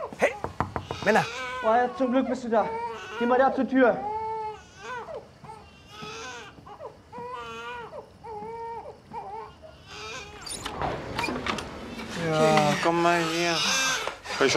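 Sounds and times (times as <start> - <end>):
baby crying: 0.8 - 10.5, 12.2 - 14.5
speech: 1.0 - 4.1, 12.3 - 13.8, 14.4 - 14.5.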